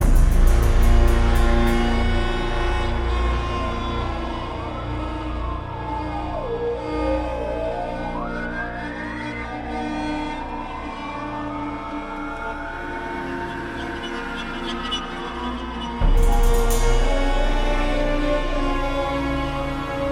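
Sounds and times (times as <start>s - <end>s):
ambient insectoid alien horror sounds: 0.0s - 20.0s.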